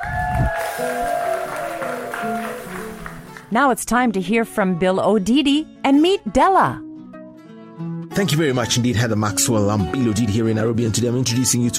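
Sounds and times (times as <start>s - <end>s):
cheering voices: 0.0s - 3.1s
audience clapping: 0.0s - 3.5s
speech: 3.5s - 6.8s, 8.2s - 11.7s.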